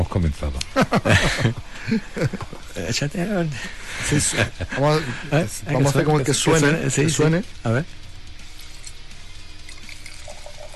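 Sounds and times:
speech: 0.0 - 8.0
laughter: 0.6 - 2.9, 3.5 - 6.3
red wine poured into a wine glass: 9.7 - 10.7.

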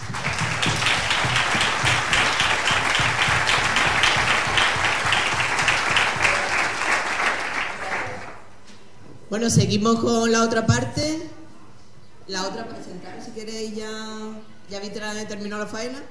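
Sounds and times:
audience applause: 0.0 - 8.4
speech: 9.3 - 11.2, 12.3 - 16.1.

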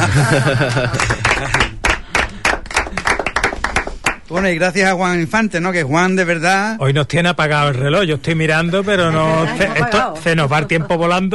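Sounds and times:
laughter: 0.0 - 3.3, 8.8 - 11.3
audience applause: 0.0 - 4.2
speech: 0.2 - 1.7, 4.3 - 11.3.

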